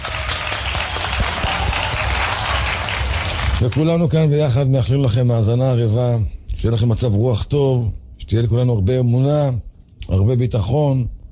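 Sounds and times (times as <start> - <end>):
audience applause: 0.0 - 4.2
speech: 3.6 - 11.2.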